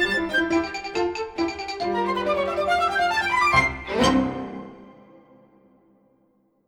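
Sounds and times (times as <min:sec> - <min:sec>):
bourree dance music: 0:00.2 - 0:04.8.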